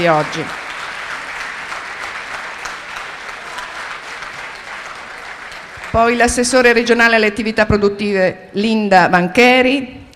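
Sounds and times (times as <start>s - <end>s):
speech: 0.0s - 0.6s, 6.0s - 10.0s
audience applause: 0.0s - 6.2s.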